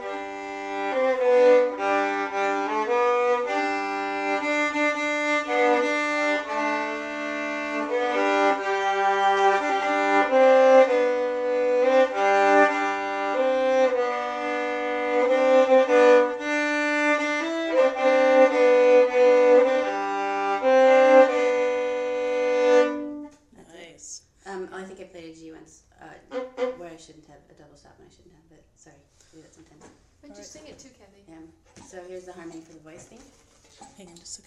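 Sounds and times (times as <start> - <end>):
fiddle playing folk song harmony: 0.0 - 23.4, 26.2 - 27.0.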